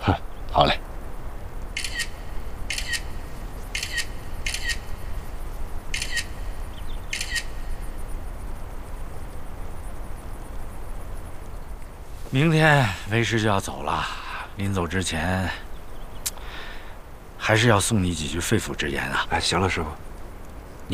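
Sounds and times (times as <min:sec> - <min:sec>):
steady hiss: 0:00.0 - 0:20.9
speech: 0:00.1 - 0:00.8, 0:12.4 - 0:15.6, 0:17.5 - 0:20.1
camera shutter clicks: 0:01.8 - 0:03.1, 0:03.7 - 0:04.8, 0:05.9 - 0:06.4, 0:07.1 - 0:07.6.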